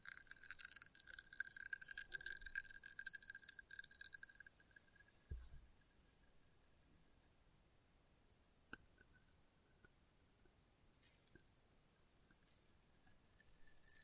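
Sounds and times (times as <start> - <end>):
glass test tubes tinkling: 0.0 - 7.3, 9.8 - 14.0
low thump: 5.3 - 5.6.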